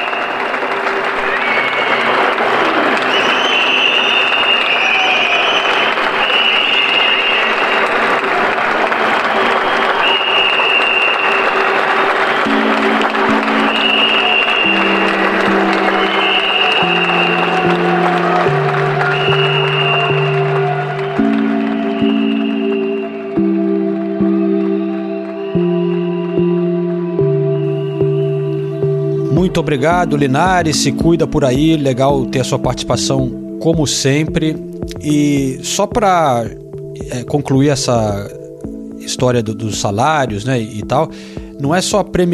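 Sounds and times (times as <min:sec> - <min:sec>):
applause from windows: 0:00.0 - 0:31.0
speech: 0:29.6 - 0:38.4, 0:39.1 - 0:42.3.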